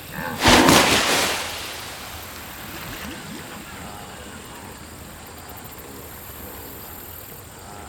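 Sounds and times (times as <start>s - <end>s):
splashing: 0.2s - 4.8s
river rushing: 0.4s - 3.7s.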